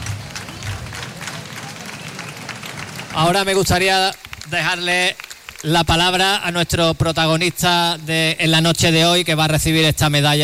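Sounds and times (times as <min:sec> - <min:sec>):
faint crowd murmur: 0:00.0 - 0:03.3
audience applause: 0:00.0 - 0:06.2
speech: 0:03.2 - 0:10.4.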